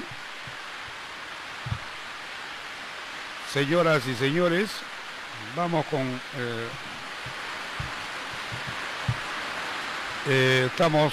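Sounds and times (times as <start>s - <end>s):
falling rain: 0.0s - 11.1s
soft low thumps: 1.6s - 2.0s, 6.7s - 9.4s
speech: 3.6s - 4.9s, 5.5s - 7.4s, 10.3s - 11.1s.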